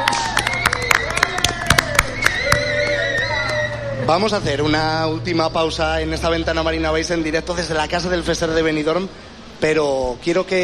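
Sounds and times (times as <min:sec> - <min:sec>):
audience applause: 0:00.0 - 0:04.0
speech: 0:04.1 - 0:10.6.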